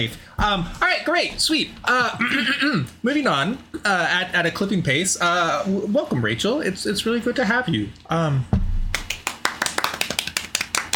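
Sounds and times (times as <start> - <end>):
speech: 0.0 - 8.6
golf clap: 8.9 - 10.9.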